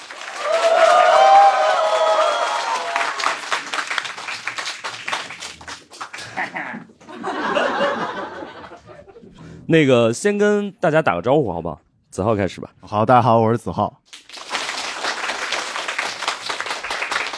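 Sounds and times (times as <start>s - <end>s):
audience applause: 0.0s - 6.8s, 14.1s - 17.3s
laughter: 6.1s - 9.5s
speech: 9.7s - 14.0s.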